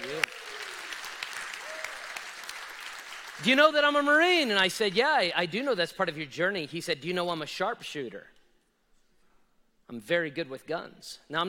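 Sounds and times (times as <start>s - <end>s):
round of applause: 0.0s - 4.2s
speech: 3.4s - 8.3s, 9.9s - 11.4s.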